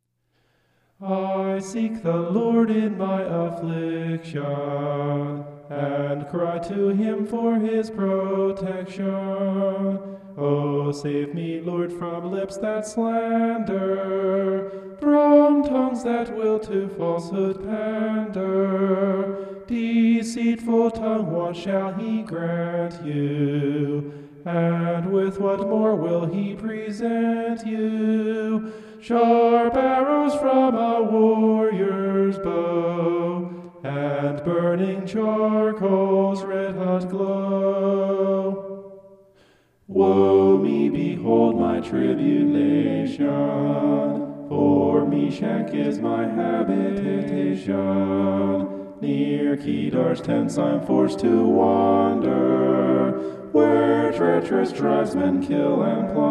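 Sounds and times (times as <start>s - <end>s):
homophonic vocals: 1.0s - 39.2s, 39.9s - 56.2s.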